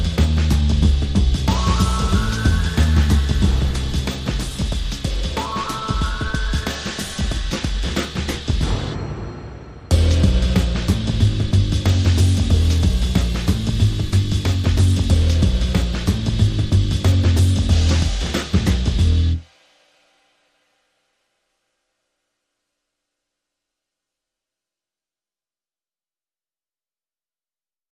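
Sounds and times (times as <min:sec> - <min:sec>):
bass: 0:00.0 - 0:08.8, 0:09.9 - 0:19.5
drums: 0:00.0 - 0:20.6
sound effects: 0:01.5 - 0:11.3.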